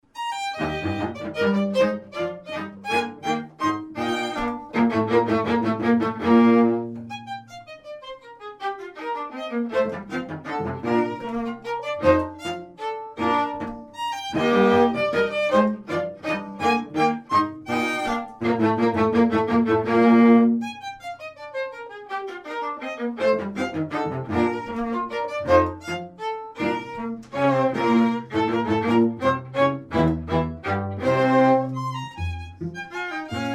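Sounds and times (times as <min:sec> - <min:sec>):
musical trio: 0:00.0 - 0:33.5.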